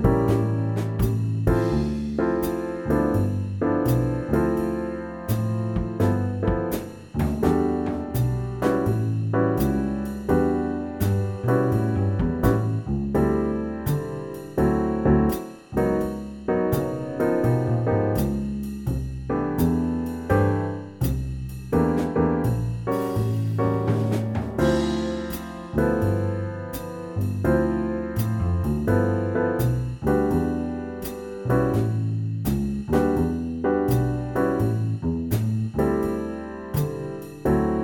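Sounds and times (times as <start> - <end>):
jazz band playing: 0.0 - 37.8.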